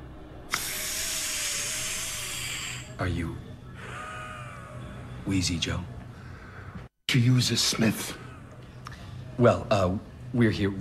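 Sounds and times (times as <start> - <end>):
puff of an asthma inhaler: 0.5 - 3.0
speech: 3.0 - 3.5, 5.3 - 6.0, 7.1 - 8.2, 9.4 - 10.7.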